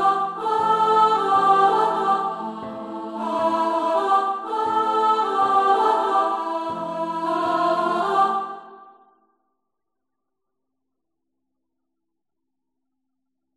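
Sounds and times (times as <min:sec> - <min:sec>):
soprano singing: 0:00.0 - 0:08.9.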